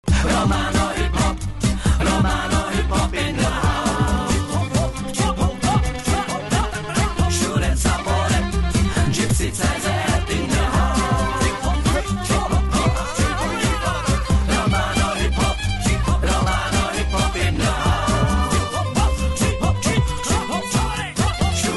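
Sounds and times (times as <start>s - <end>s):
Czech Romani hip hop music: 0.0s - 21.7s
laughter: 12.6s - 15.1s.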